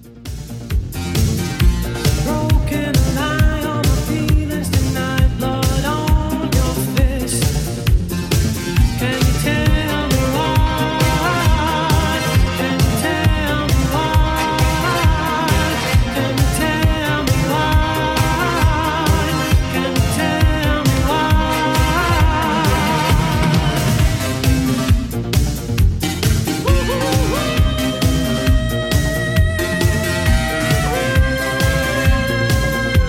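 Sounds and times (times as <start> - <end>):
eighties drum machine beat: 0.0 - 33.0.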